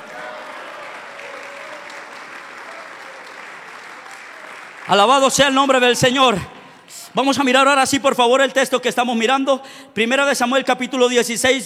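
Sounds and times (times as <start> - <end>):
church audience applause: 0.0 - 5.6
speech: 4.9 - 6.6, 7.2 - 11.6.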